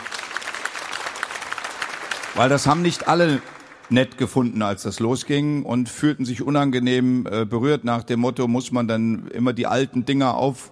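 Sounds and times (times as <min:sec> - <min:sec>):
audience applause: 0:00.0 - 0:04.0
speech: 0:02.3 - 0:10.7.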